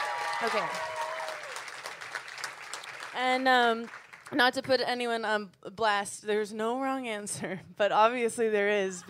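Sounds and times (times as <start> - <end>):
audience clapping: 0.0 - 4.5
speech: 0.4 - 1.0, 3.2 - 9.0.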